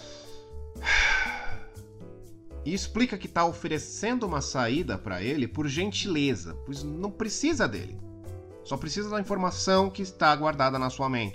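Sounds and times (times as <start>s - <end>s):
heavy breathing voiced for a character: 0.0s - 1.9s
faint sustained tonal background: 0.0s - 11.3s
speech: 2.6s - 8.0s, 8.7s - 11.3s.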